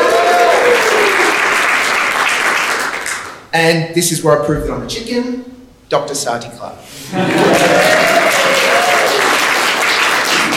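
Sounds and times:
audience polite clapping: 0.4s - 3.4s, 7.4s - 10.5s
speech: 3.6s - 8.3s.

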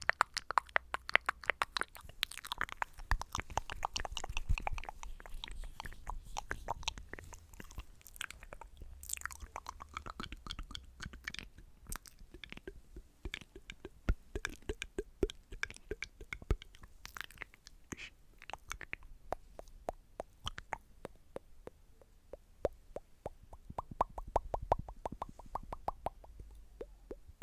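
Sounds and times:
wet mouth clicks, pops and smacks: 0.0s - 27.4s.

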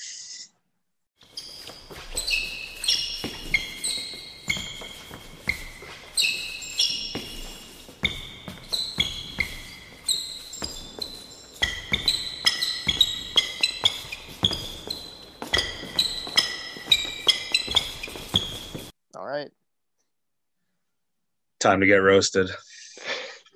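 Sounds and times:
sneakers squeaking on a basketball court: 1.2s - 18.9s
speech: 21.6s - 22.6s.

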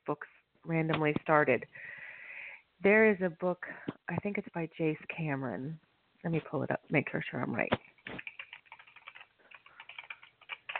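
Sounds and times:
speech: 0.1s - 2.0s, 2.8s - 8.3s
clicking and typing on a computer keyboard: 8.0s - 10.7s.

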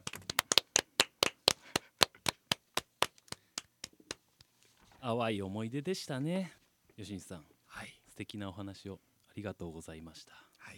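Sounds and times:
hand clapping: 0.0s - 4.2s
speech: 5.0s - 10.7s.

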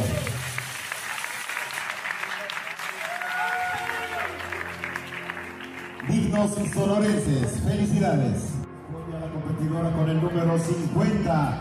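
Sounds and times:
audience applause: 0.0s - 7.9s
speech: 6.4s - 8.5s, 9.8s - 11.5s.

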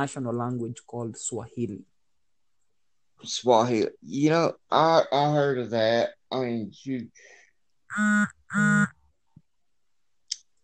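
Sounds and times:
speech: 0.0s - 1.9s, 3.2s - 9.0s
phone notification buzzy honk-like tones: 7.9s - 8.9s.

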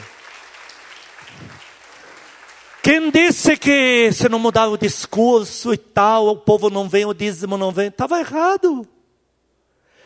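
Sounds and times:
audience applause: 0.0s - 3.5s
speech: 2.9s - 9.0s.

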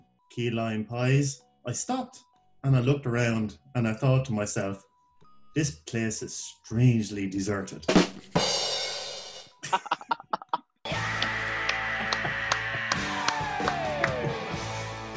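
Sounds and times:
speech: 0.4s - 4.9s, 5.6s - 8.7s
laughter: 9.6s - 14.4s
applause sound effect from clapping button: 10.9s - 14.7s
crowd cheering with whoops: 10.9s - 15.1s.

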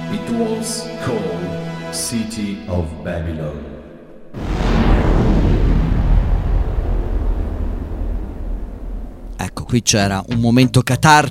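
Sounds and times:
speech: 0.1s - 4.5s, 9.7s - 11.2s
thunder crack and rumble: 4.4s - 9.8s.

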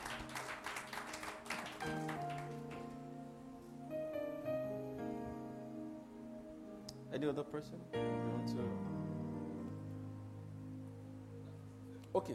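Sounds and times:
audience clapping: 0.0s - 3.1s
sustained keyboard chords: 0.0s - 12.3s
speech: 7.2s - 9.0s, 12.2s - 12.3s.

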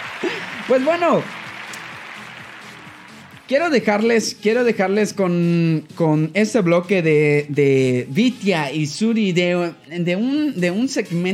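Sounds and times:
laughter: 0.0s - 1.0s
audience applause: 0.0s - 4.0s
speech: 0.2s - 1.4s, 3.5s - 11.3s.

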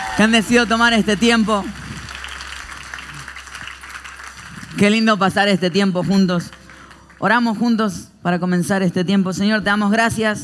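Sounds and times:
audience applauding: 0.0s - 7.3s
speech: 0.2s - 1.8s, 4.8s - 6.6s, 7.2s - 10.4s.

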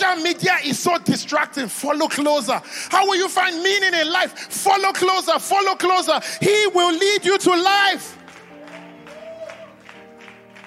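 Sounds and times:
speech: 0.4s - 8.2s
few people clapping: 8.0s - 10.6s.

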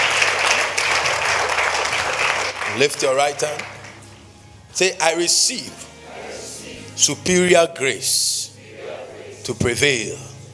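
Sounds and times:
audience clapping: 0.0s - 4.1s
speech: 2.8s - 3.7s, 4.8s - 5.9s, 7.0s - 8.4s, 9.5s - 10.3s.

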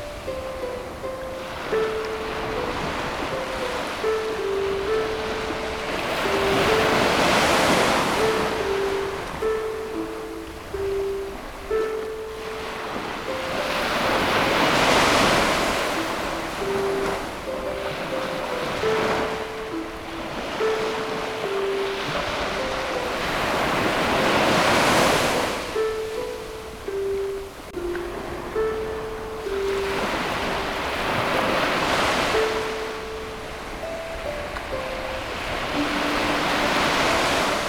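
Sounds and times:
harp melody: 0.0s - 37.6s
ocean waves: 0.0s - 37.6s.

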